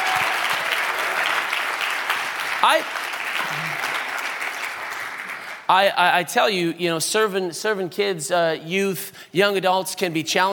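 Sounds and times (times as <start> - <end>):
audience applause: 0.0 - 5.7
speech: 2.6 - 3.9, 5.7 - 10.5.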